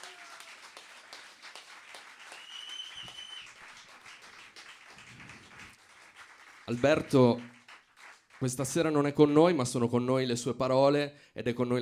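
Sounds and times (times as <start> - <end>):
audience applause: 0.0 - 8.8
speech: 6.7 - 7.5, 8.4 - 11.8.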